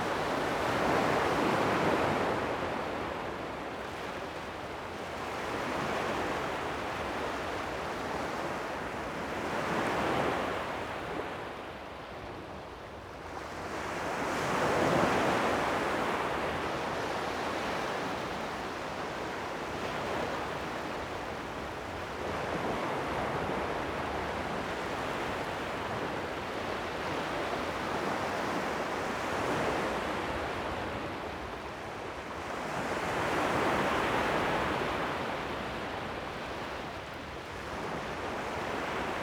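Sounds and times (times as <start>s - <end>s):
calm waves: 0.0s - 39.2s.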